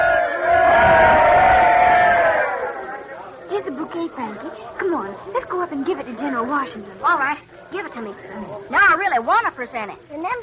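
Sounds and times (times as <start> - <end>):
crowd cheering hooray: 0.0 - 3.4
speech: 4.1 - 10.4.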